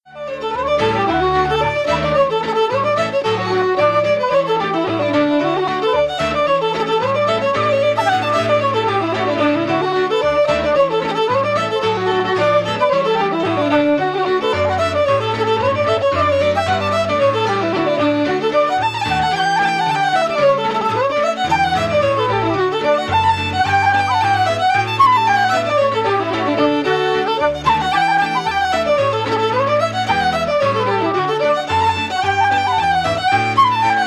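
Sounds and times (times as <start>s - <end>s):
fiddle playing: 0.0s - 34.0s.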